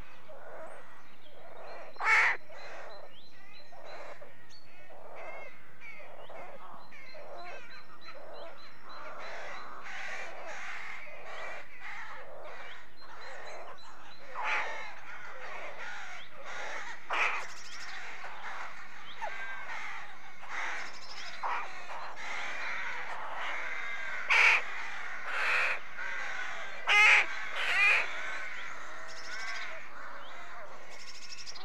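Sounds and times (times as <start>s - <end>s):
birds at rookery nests: 0.0s - 31.6s.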